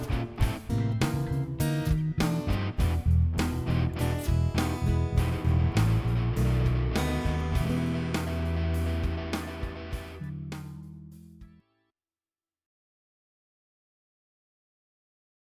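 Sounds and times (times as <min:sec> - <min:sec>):
E blues chord progression jam: 0:00.0 - 0:11.6.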